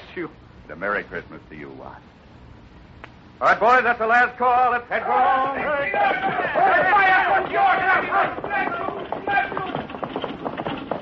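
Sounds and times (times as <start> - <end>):
speech: 0.2 - 2.2, 3.4 - 8.8
crowd voices and calls: 4.9 - 10.8
horse-drawn buckboard wagon clip-clopping: 5.0 - 10.9.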